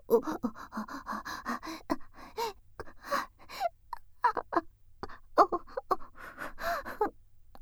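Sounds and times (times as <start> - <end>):
close breathing ASMR loop: 0.2 - 3.8, 5.8 - 7.1.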